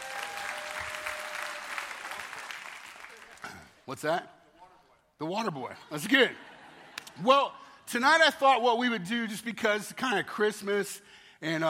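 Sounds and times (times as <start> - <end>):
crowd applauding in a large room: 0.0 - 3.8
speech: 3.9 - 4.4, 5.2 - 6.5, 7.2 - 11.6.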